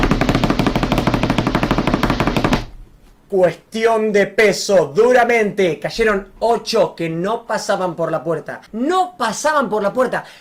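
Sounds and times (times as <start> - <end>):
snare drum roll: 0.0 - 2.7
speech: 3.3 - 10.3.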